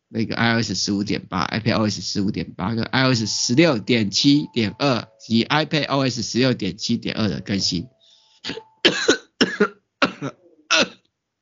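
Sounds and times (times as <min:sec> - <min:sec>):
speech: 0:00.1 - 0:10.4
person coughing from choking on saliva: 0:08.5 - 0:11.0.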